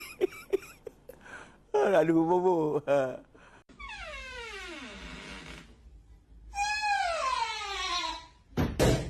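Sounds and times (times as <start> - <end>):
speech: 1.8 - 3.3
door creaking: 3.7 - 5.8, 6.6 - 8.6
door thump: 8.6 - 9.0.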